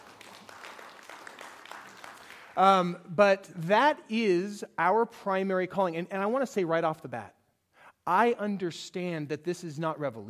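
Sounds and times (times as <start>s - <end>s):
audience clapping: 0.0s - 3.0s
speech: 2.6s - 7.4s, 8.0s - 10.2s.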